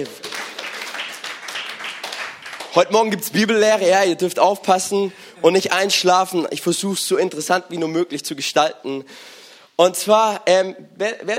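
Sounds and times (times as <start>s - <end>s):
speech: 0.0s - 0.4s, 2.8s - 11.3s
audience applause: 0.0s - 2.8s.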